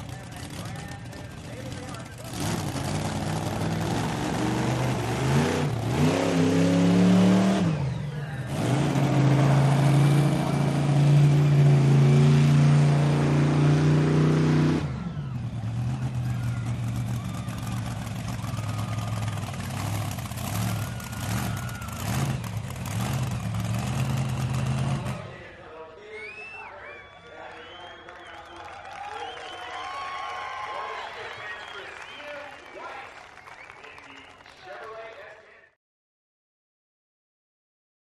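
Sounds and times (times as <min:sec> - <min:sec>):
crowd cheering: 0:00.0 - 0:13.6, 0:14.5 - 0:24.0, 0:25.1 - 0:35.8
monster truck starting up, idling, revving and driving away: 0:00.0 - 0:25.6
public address announcement: 0:25.3 - 0:28.6, 0:30.8 - 0:35.7.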